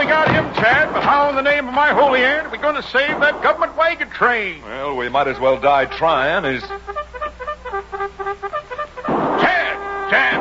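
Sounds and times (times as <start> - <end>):
speech: 0.1 - 7.0, 10.1 - 10.3
cavalry bugle call: 5.8 - 10.3.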